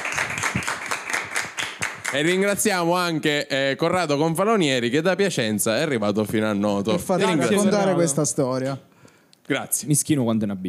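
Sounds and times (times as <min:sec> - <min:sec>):
audience applause: 0:00.0 - 0:02.3
speech: 0:02.1 - 0:08.9, 0:09.5 - 0:10.6.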